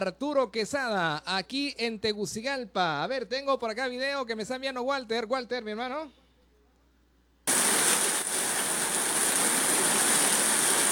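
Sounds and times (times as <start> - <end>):
speech: 0.0 - 6.2
heavy rain in Juticalpa, Olancho: 7.5 - 10.9.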